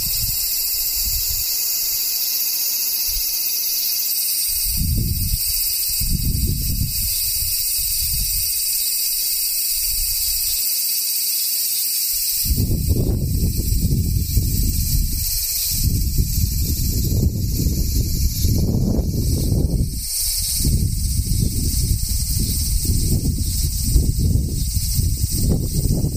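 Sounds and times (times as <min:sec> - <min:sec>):
cicadas droning: 0:00.0 - 0:26.1
low rumbling gusts: 0:04.5 - 0:08.4, 0:12.4 - 0:26.1.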